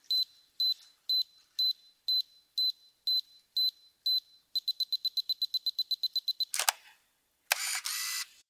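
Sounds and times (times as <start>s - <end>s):
film camera shutter for timed long exposure photo: 6.5s - 6.9s, 7.5s - 8.4s.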